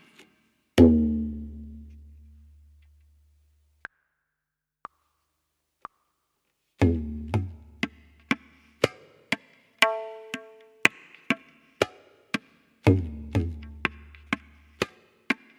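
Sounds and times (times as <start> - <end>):
tabla solo: 0.8 - 2.8, 6.8 - 15.5.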